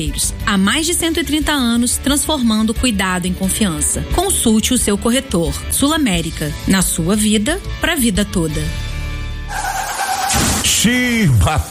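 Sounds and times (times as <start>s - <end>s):
speech: 0.0s - 8.9s, 10.7s - 11.6s
tires screeching: 9.5s - 10.8s
car crash: 9.5s - 11.0s.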